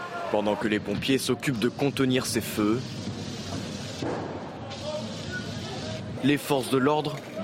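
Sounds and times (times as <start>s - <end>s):
speech: 0.3s - 3.0s, 6.2s - 7.4s
fireworks being fired during street riot: 0.9s - 6.2s.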